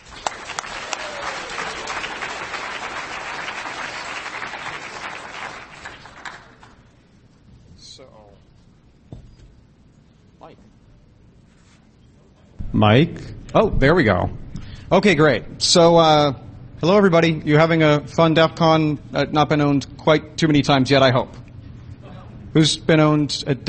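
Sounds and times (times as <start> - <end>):
DEF CON audience applauding a speaker: 0.0 - 6.9
speech: 12.8 - 21.4, 22.6 - 23.6.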